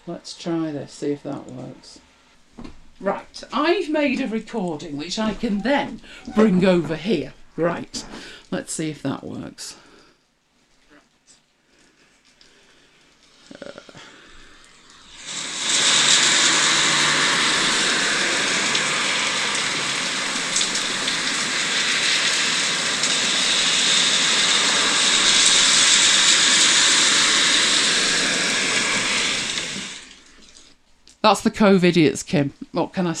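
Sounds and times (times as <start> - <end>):
speech: 0.0 - 9.9, 31.2 - 33.1
cars passing on a rain-soaked road in heavy rain: 15.1 - 30.3.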